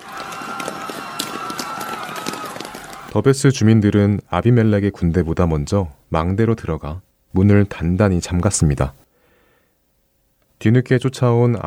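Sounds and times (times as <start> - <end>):
many people running away in a hurry: 0.0 - 3.2
speech: 3.1 - 9.0, 10.6 - 11.6.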